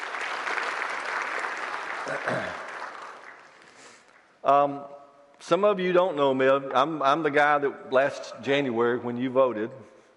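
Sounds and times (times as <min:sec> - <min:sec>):
audience applause: 0:00.0 - 0:04.0
speech: 0:02.1 - 0:02.6, 0:04.4 - 0:09.9.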